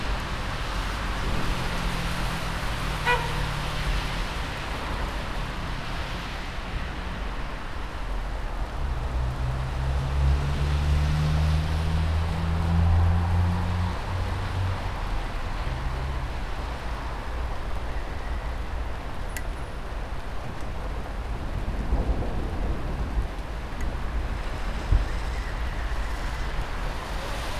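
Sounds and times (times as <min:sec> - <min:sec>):
urban city ambience on a rainy day: 0:00.0 - 0:27.5
distant thunder: 0:21.3 - 0:26.1.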